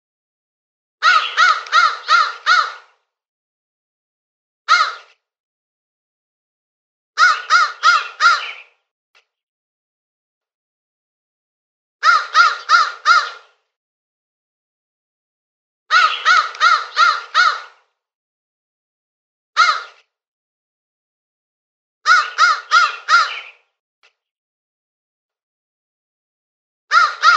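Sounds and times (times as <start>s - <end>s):
crow cawing: 1.0s - 3.0s, 4.7s - 5.1s, 7.2s - 8.7s, 12.0s - 13.6s, 15.9s - 17.9s, 19.6s - 20.0s, 22.0s - 23.6s, 26.9s - 27.3s.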